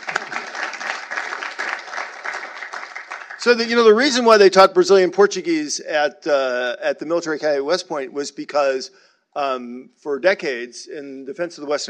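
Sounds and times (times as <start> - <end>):
crowd applauding: 0.0 - 4.1
speech: 3.4 - 11.8.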